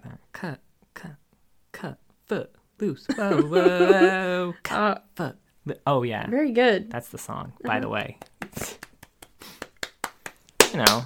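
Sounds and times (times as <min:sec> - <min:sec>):
speech: 0:00.4 - 0:01.2, 0:01.8 - 0:08.7, 0:10.7 - 0:11.0
laughter: 0:03.1 - 0:04.4, 0:07.6 - 0:08.8
hand clapping: 0:07.7 - 0:11.0.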